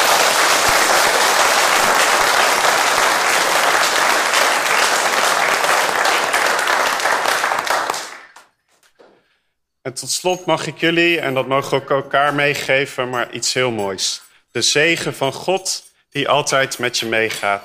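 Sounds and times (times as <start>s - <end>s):
audience applause: 0.0s - 8.4s
speech: 9.9s - 17.6s.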